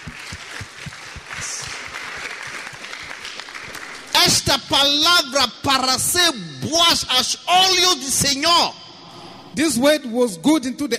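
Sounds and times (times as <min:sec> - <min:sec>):
audience clapping: 0:00.0 - 0:04.8
speech: 0:04.3 - 0:08.8, 0:09.6 - 0:10.9.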